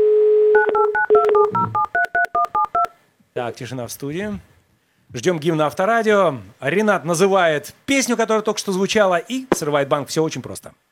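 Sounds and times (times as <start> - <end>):
telephone dial tone: 0.0 - 2.6
telephone touch-tone dialing beeps: 0.5 - 2.9
speech: 3.4 - 10.8.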